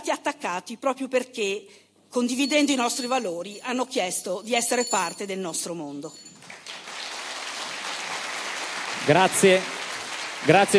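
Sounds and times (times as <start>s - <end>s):
speech: 0.1s - 6.3s, 9.0s - 9.8s, 10.4s - 10.7s
audience applause: 6.5s - 10.7s.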